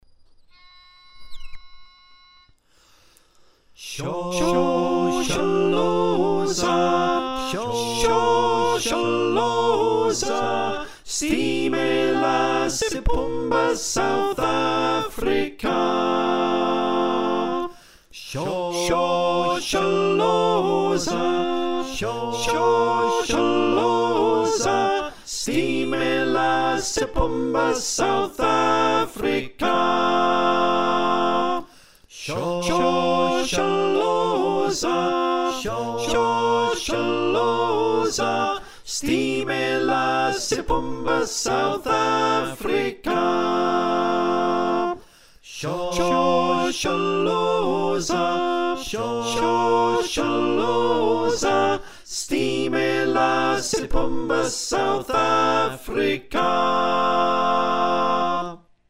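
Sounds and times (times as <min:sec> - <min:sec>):
SATB choir singing: 0:03.8 - 0:58.7.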